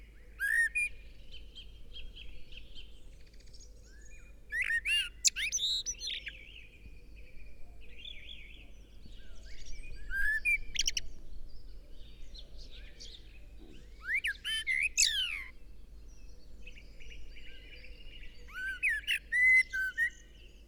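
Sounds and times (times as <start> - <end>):
Eurasian blackbird singing: 0.0 - 20.6.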